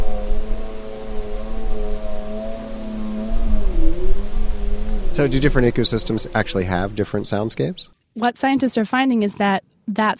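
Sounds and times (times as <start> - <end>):
snowmobile engine: 0.0 - 7.8
speech: 5.2 - 10.1.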